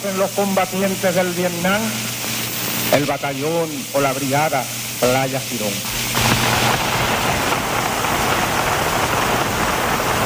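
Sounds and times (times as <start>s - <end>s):
speech: 0.0s - 2.2s, 2.9s - 6.1s
applause: 6.2s - 10.2s.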